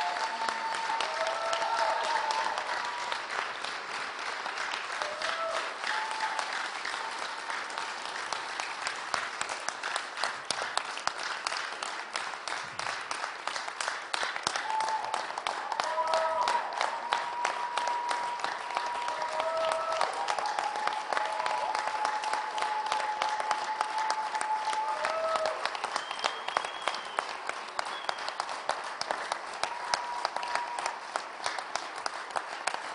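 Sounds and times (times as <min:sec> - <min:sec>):
audience applauding: 0:00.0 - 0:32.9
whistle-like tones: 0:26.0 - 0:28.4.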